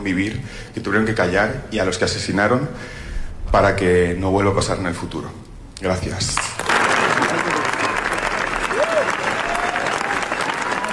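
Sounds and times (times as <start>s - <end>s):
speech: 0.0s - 6.5s
audience ovation: 6.6s - 10.9s.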